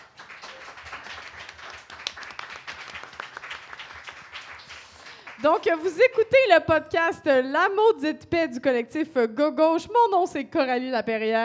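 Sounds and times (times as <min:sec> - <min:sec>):
pub crowd applauding: 0:00.0 - 0:06.0
speech: 0:05.4 - 0:11.4.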